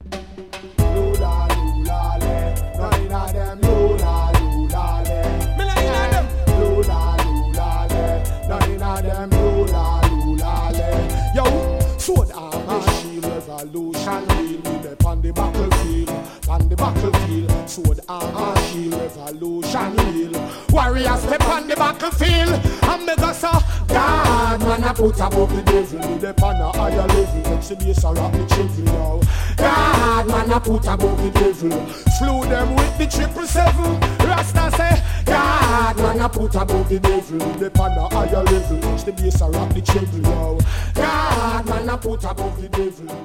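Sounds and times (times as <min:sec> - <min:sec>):
meditation reggae riddim: 0:00.0 - 0:43.2.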